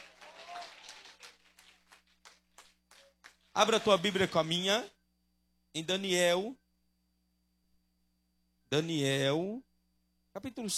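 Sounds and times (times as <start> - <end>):
audience clapping hands: 0.0 - 4.8
speech: 3.6 - 5.0, 5.8 - 6.6, 8.7 - 9.7, 10.4 - 10.7.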